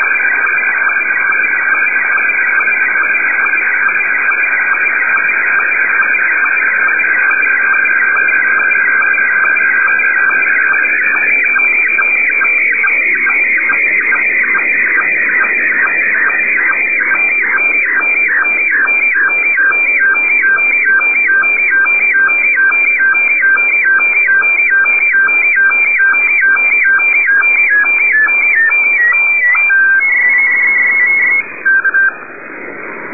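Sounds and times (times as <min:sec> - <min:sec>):
SSTV signal tones: 0:00.0 - 0:33.1.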